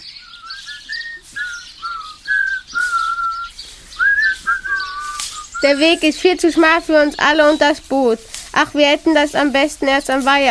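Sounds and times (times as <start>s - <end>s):
people whistling while walking: 0.0s - 6.1s
speech: 5.6s - 10.4s.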